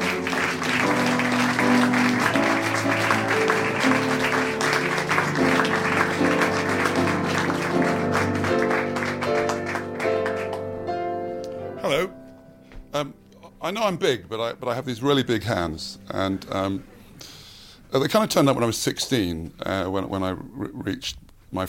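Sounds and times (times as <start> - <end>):
large audience applause: 0.0 - 11.1
sustained musical tones: 0.0 - 13.4
speech: 13.7 - 21.6.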